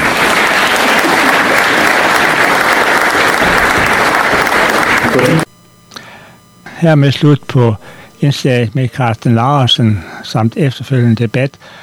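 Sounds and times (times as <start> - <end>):
audience applause: 0.0 - 5.5
speech: 5.2 - 5.5, 6.8 - 11.8.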